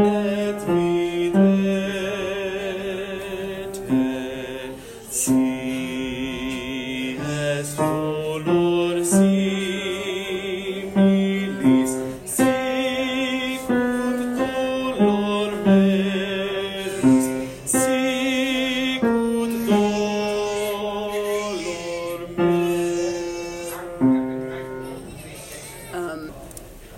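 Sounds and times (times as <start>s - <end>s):
bass choir voices singing holy week choir practice: 0.0s - 24.1s.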